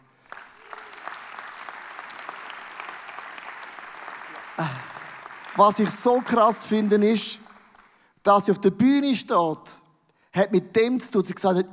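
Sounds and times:
audience applause: 0:00.0 - 0:08.0
speech: 0:04.6 - 0:04.9, 0:05.6 - 0:07.4, 0:08.2 - 0:09.8, 0:10.4 - 0:11.7.

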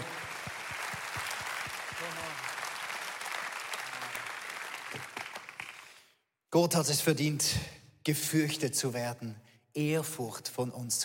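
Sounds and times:
audience applause: 0:00.0 - 0:06.0
speech: 0:06.5 - 0:11.0.

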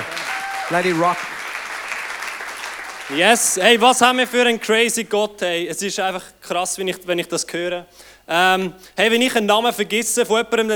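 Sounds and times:
crowd clapping: 0:00.0 - 0:04.1
speech: 0:00.7 - 0:01.3, 0:03.1 - 0:10.7.

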